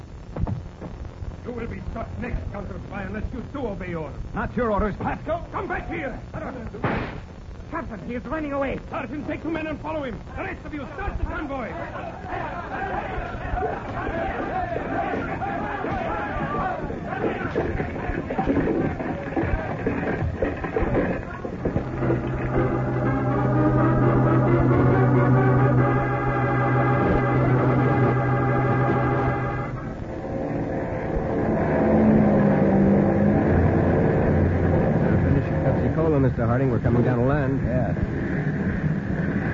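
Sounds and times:
speech: 1.6 - 19.3, 36.4 - 38.0
murmuring voices and crowd chatter: 10.4 - 30.1
propeller plane engine droning in flight: 20.0 - 39.5.

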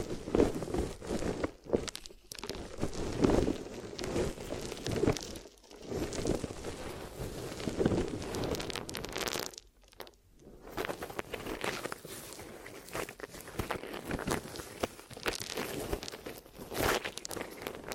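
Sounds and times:
glue ear massage rubbing and crinkly rustling: 0.0 - 17.9.

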